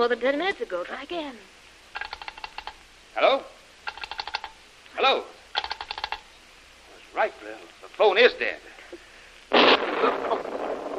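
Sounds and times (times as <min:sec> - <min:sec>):
speech: 0:00.0 - 0:01.6, 0:03.2 - 0:03.6, 0:05.0 - 0:05.4, 0:07.2 - 0:09.0, 0:10.0 - 0:10.6
heavy explosion: 0:09.5 - 0:10.9.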